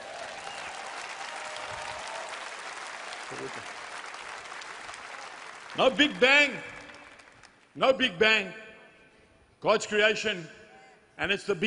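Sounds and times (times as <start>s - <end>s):
crowd audience clapping: 0.0s - 7.8s
speech: 3.3s - 3.8s, 5.7s - 6.7s, 7.8s - 8.6s, 9.6s - 10.6s, 11.2s - 11.6s.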